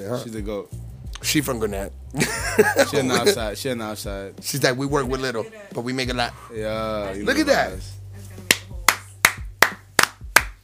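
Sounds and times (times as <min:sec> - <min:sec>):
speech: 0:00.0 - 0:08.0
laughter: 0:02.2 - 0:03.5
slow hand clapping: 0:08.5 - 0:10.6.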